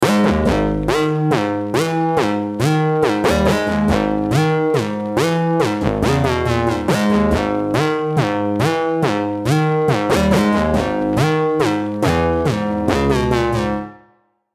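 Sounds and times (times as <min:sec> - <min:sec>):
lead melody: 0:00.0 - 0:14.2.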